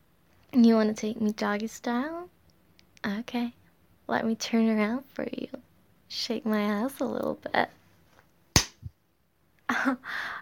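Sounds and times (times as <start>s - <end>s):
speech: 0.5s - 2.2s, 3.0s - 7.8s, 9.7s - 10.4s
slap on the body: 8.6s - 8.9s.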